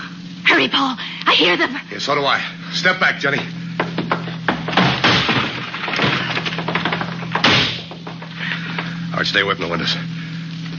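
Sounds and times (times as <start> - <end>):
low steady hum: 0.0 - 10.7
speech: 0.6 - 3.6, 9.2 - 10.1
wooden door being kicked in: 3.8 - 8.9.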